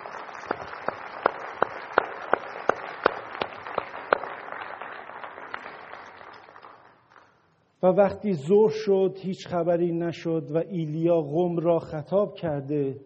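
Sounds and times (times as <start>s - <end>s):
congregation clapping in unison: 0.0s - 7.5s
speech: 7.8s - 13.0s.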